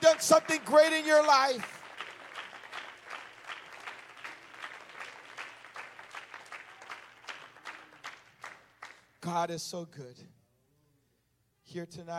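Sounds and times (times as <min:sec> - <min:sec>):
crowd clapping hands: 0:00.0 - 0:09.2
speech: 0:00.1 - 0:01.8, 0:09.2 - 0:10.4, 0:11.7 - 0:12.1.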